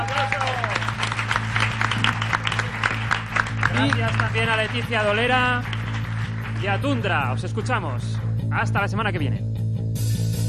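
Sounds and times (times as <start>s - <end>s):
audience applause: 0.0s - 7.5s
speech: 3.8s - 5.8s, 6.6s - 9.5s.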